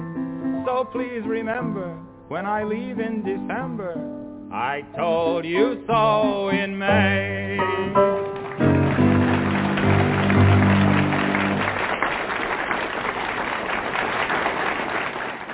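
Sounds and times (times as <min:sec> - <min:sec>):
speech: 0:00.7 - 0:08.2
applause at end of song: 0:08.1 - 0:15.5.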